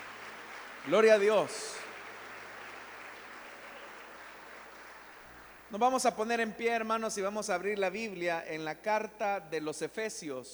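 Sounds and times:
audience applauding: 0.0s - 5.7s
speech: 0.8s - 1.8s, 5.7s - 10.5s.

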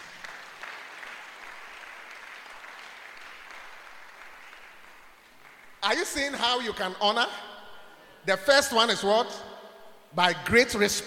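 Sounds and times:
crowd applause: 0.0s - 5.8s
speech: 5.8s - 7.5s, 8.2s - 9.5s, 10.1s - 11.0s.

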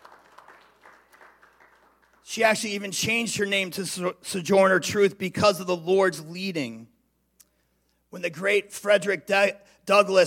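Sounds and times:
audience clapping: 0.0s - 2.5s
speech: 2.3s - 6.9s, 8.1s - 10.2s.

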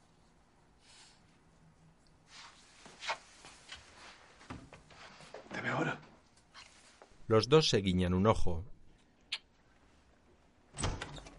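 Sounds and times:
speech: 7.3s - 8.7s
door swinging open: 10.7s - 11.3s.

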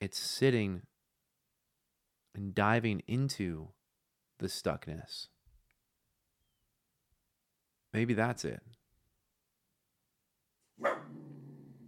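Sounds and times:
speech: 0.1s - 0.9s, 2.4s - 3.8s, 4.4s - 5.4s, 7.9s - 8.8s
dog barking outside: 10.8s - 11.7s.

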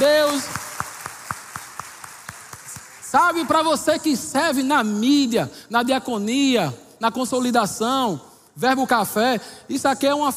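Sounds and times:
audience applause: 0.0s - 3.1s
speech: 3.1s - 10.3s.

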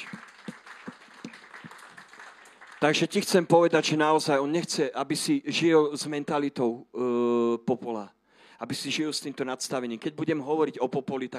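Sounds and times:
audience applause: 0.0s - 3.5s
speech: 2.8s - 11.3s.

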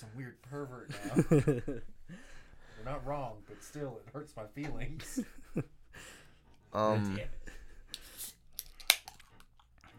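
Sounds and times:
speech: 0.0s - 2.2s, 2.8s - 6.1s, 6.7s - 7.5s
laughter: 0.9s - 2.2s
beer can cracking open: 7.9s - 9.6s.

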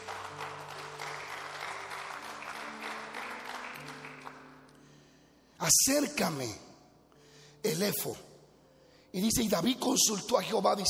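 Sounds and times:
audience applause: 0.0s - 4.6s
speech: 5.6s - 6.6s, 7.6s - 8.3s, 9.2s - 10.8s.

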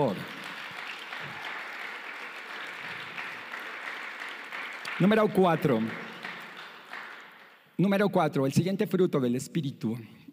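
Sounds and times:
speech: 0.0s - 0.3s, 5.0s - 6.0s, 7.8s - 10.2s
audience applause: 0.0s - 7.6s.

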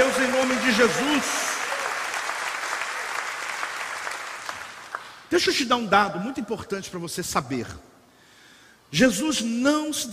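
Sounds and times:
audience applause: 0.0s - 5.3s
speech: 0.7s - 1.5s, 5.3s - 7.9s, 8.9s - 10.1s.

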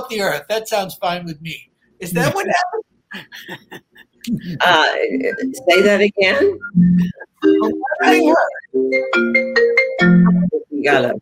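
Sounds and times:
speech: 0.1s - 11.2s
phone ringtone: 5.4s - 10.6s.

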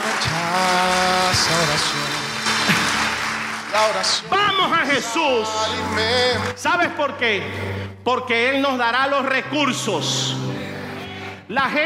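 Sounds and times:
audience applauding: 0.0s - 6.6s
speech: 3.8s - 10.5s, 11.5s - 11.8s.

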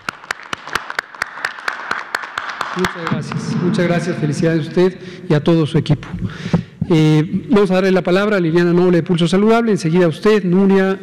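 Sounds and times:
group applauding: 0.0s - 3.9s
speech: 2.8s - 11.0s.

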